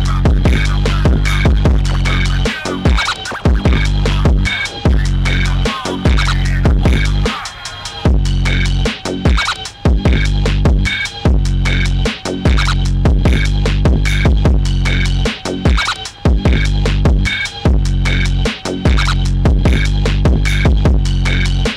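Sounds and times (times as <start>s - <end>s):
phonk music: 0.0s - 21.7s.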